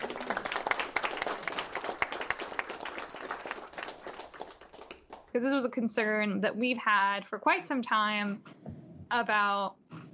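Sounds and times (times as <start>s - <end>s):
round of applause: 0.0s - 5.3s
speech: 5.4s - 9.8s.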